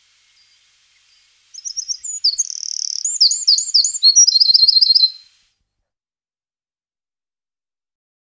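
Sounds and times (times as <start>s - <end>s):
wren singing: 0.0s - 5.3s.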